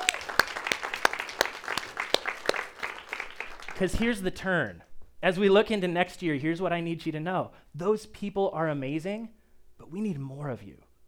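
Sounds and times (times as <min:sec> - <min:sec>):
whoops: 0:00.0 - 0:00.5
church congregation clapping for its volunteer teams: 0:00.0 - 0:04.1
speech: 0:03.8 - 0:10.8.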